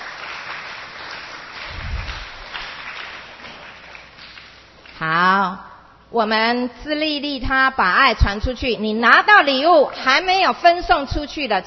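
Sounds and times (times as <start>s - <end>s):
crowd applause: 0.0s - 4.6s
speech: 5.0s - 11.6s.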